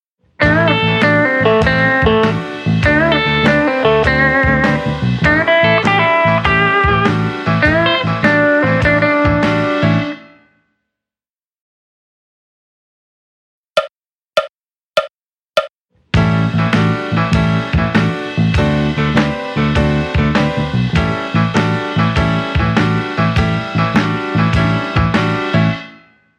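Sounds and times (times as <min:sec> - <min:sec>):
RnB guitar: 0:00.4 - 0:10.2, 0:16.2 - 0:25.7.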